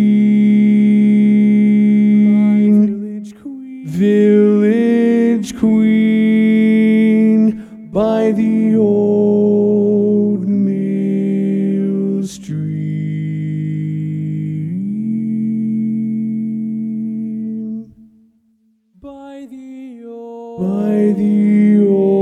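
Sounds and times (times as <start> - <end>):
baritone voice singing: 0.0 - 17.9, 19.0 - 22.2.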